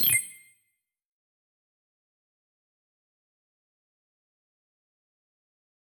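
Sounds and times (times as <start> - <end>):
confirmation tones: 0.0 - 0.5.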